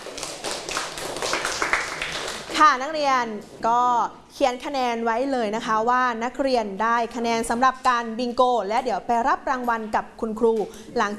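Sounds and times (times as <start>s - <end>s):
students clapping for themselves in class: 0.0s - 2.6s
speech: 2.6s - 11.1s.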